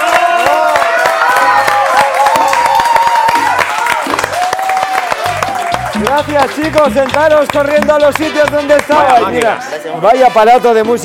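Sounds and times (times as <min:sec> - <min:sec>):
studio audience cheering and whooping: 0:00.0 - 0:06.8
studio audience applauding: 0:00.0 - 0:09.6
speech: 0:06.2 - 0:11.0.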